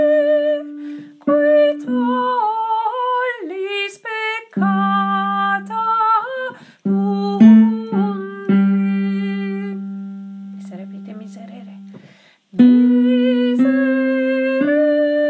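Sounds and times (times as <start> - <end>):
tenor singing: 0.0 - 15.2.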